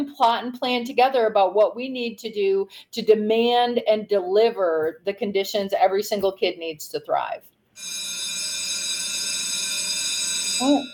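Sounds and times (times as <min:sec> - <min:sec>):
speech: 0:00.1 - 0:08.2, 0:10.6 - 0:10.9
bell ringing: 0:07.8 - 0:10.9.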